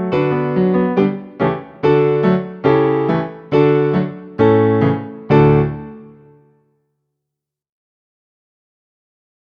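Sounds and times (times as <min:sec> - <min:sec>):
piano accompaniment for playing along: 0:00.0 - 0:06.7.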